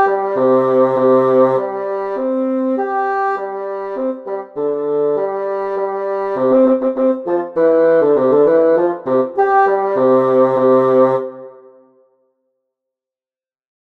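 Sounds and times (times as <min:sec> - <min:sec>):
bass flute: 0:00.0 - 0:12.0.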